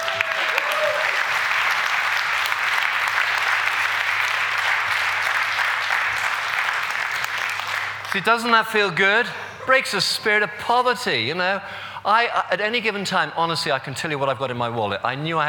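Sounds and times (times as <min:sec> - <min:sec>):
audience applause: 0:00.0 - 0:08.2
speech: 0:08.2 - 0:15.4.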